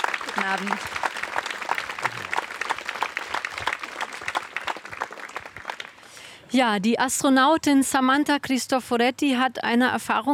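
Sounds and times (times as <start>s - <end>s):
audience applause welcoming two guests onto the podium at an evening talk event: 0.0s - 6.2s
speech: 0.4s - 1.0s, 6.5s - 10.3s.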